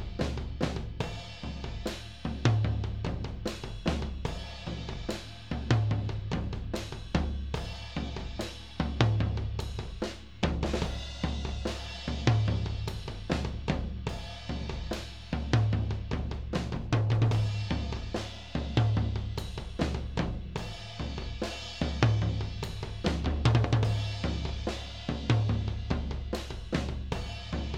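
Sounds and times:
tom drums: 0.0 - 27.7.

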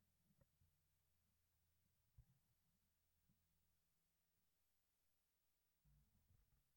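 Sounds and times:
bass: 0.0 - 3.8, 5.8 - 6.6.

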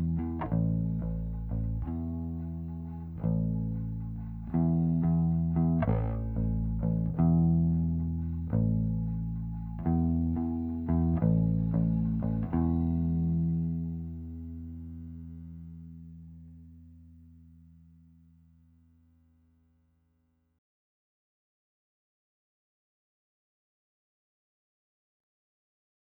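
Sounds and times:
DI line bass guitar: 0.0 - 19.2.

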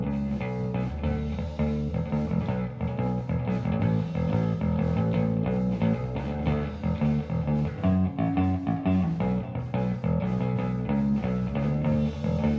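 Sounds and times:
bass recorded with stereo SM57 microphones: 0.0 - 12.5.

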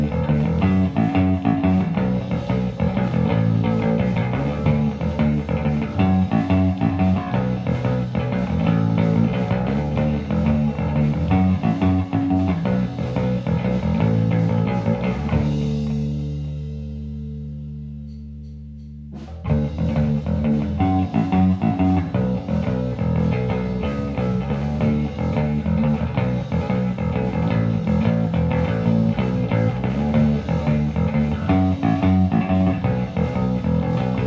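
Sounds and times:
bass recorded with SM57 microphone: 0.0 - 34.2.

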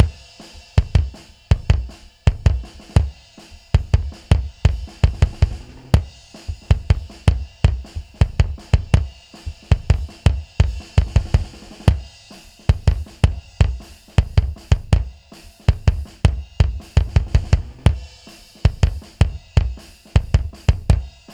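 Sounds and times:
bass drum: 0.0 - 21.3.

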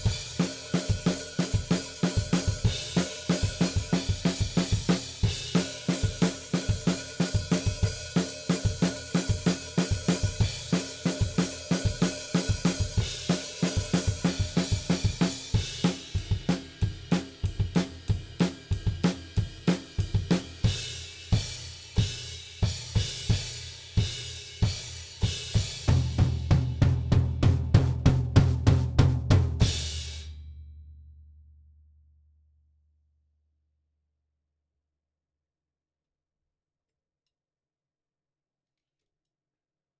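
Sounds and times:
drums: 0.0 - 30.8.

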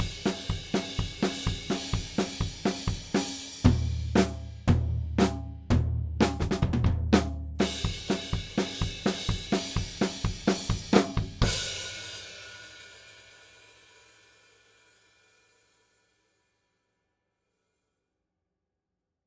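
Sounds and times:
drums: 0.0 - 16.5.

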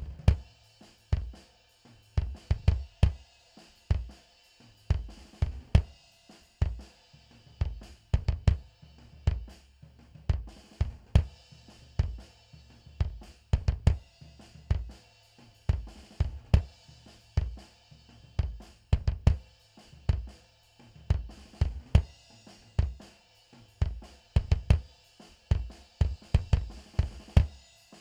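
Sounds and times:
mono bass drum: 0.0 - 0.5, 2.2 - 3.2, 4.9 - 5.9, 7.4 - 15.0, 15.7 - 23.1, 23.8 - 24.9, 25.5 - 27.6.

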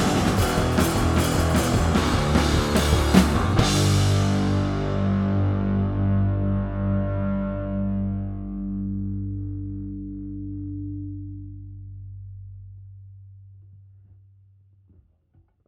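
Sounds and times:
drums: 0.0 - 6.8
bass: 0.0 - 15.6.

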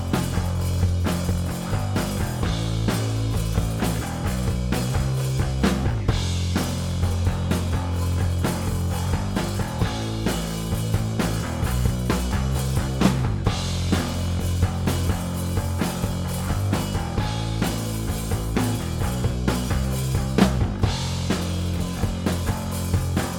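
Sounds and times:
compressed bass: 0.0 - 23.3
drums: 0.0 - 23.3.

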